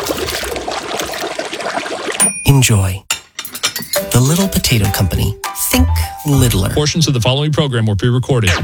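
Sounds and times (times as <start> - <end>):
water pouring into a pot for boiling little potatoes: 0.0 - 2.3
speech: 2.5 - 3.1, 4.2 - 8.6.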